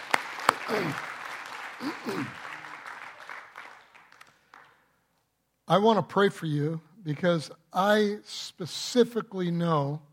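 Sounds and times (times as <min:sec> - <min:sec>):
audience applause: 0:00.0 - 0:04.8
speech: 0:00.7 - 0:01.1, 0:01.8 - 0:02.4, 0:05.7 - 0:10.1.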